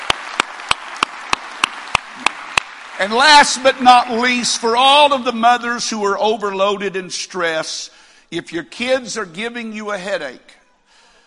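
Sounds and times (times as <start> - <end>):
audience hand clapping: 0.0 - 3.2
speech: 3.0 - 10.6.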